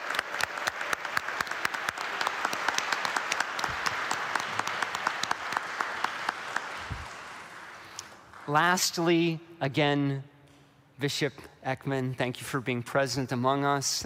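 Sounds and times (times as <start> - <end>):
round of applause: 0.0 - 9.3
speech: 8.5 - 10.3, 11.0 - 14.0.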